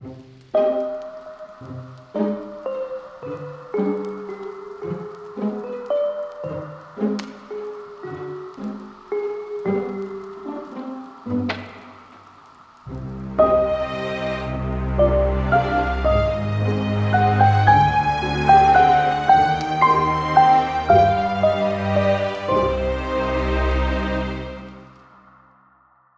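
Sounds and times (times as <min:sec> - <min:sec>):
music: 0:00.0 - 0:25.8.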